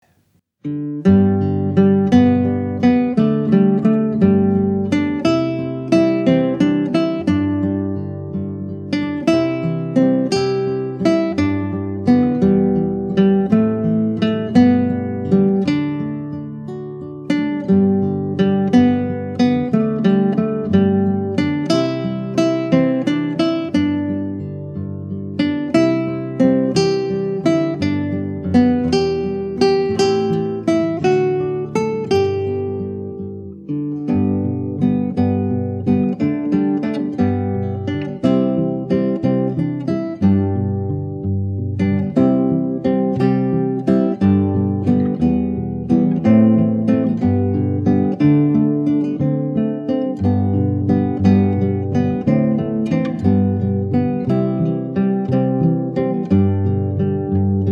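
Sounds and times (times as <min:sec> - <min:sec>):
classical guitar: 0:00.0 - 0:57.7.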